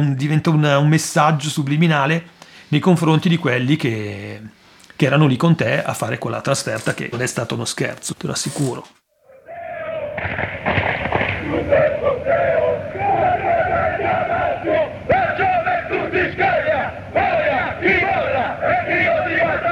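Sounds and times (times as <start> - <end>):
speech: 0.0 - 9.0
football fans chanting: 9.2 - 19.7.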